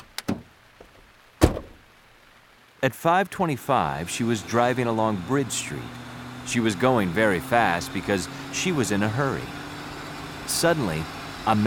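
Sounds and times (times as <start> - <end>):
car door slam as a woman gets into her car: 0.0 - 0.5, 1.4 - 1.8
car door latch clicks: 0.0 - 1.8
speech: 2.8 - 9.6, 10.5 - 11.6.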